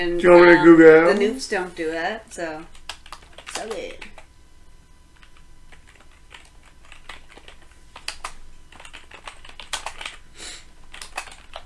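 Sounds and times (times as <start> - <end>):
speech: 0.0 - 2.8, 3.6 - 4.1
typing on a keyboard: 2.7 - 4.3, 5.2 - 10.2, 10.9 - 11.6.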